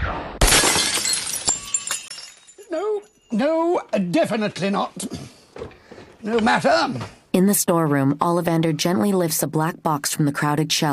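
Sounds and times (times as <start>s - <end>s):
vase shattering: 0.4s - 3.3s
tinkling shards settling: 0.6s - 3.8s
speech: 2.7s - 10.9s.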